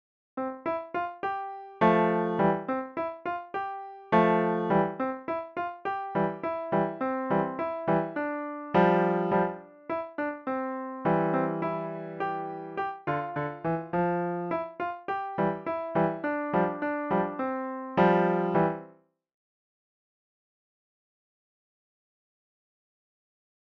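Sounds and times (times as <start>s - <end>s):
solo piano: 0.4s - 19.0s.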